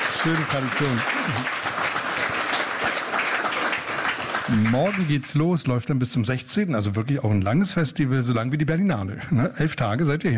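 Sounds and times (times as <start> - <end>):
audience clapping: 0.0 - 5.7
speech: 0.2 - 1.8, 4.5 - 10.3.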